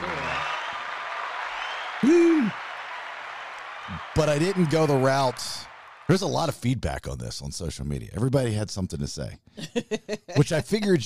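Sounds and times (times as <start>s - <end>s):
applause: 0.0s - 6.6s
speech: 2.0s - 2.6s, 4.2s - 11.0s
laughter: 9.6s - 10.9s.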